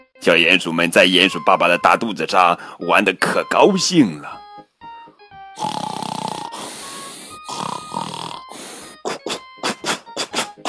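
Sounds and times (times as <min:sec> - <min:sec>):
speech: 0:00.2 - 0:04.4
person imitating loud raspy snoring: 0:05.6 - 0:10.6.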